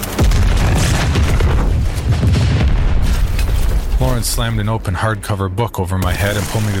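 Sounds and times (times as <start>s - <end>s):
low rumble and crackling roar: 0.0s - 6.7s
bomb explosion: 0.1s - 5.1s
speech: 4.2s - 6.7s.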